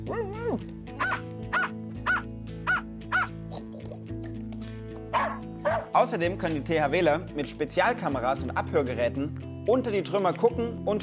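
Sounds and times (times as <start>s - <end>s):
speech: 0.0s - 1.4s, 6.0s - 11.0s
music: 0.0s - 11.0s
search dogs barking in disaster rubble: 1.0s - 3.4s, 5.1s - 5.9s.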